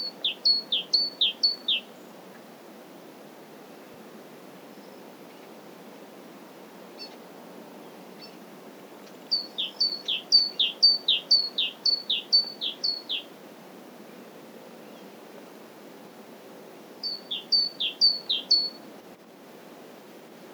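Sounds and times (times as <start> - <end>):
great tit Parus major singing: 0.0 - 2.0, 9.3 - 13.3, 17.0 - 18.8.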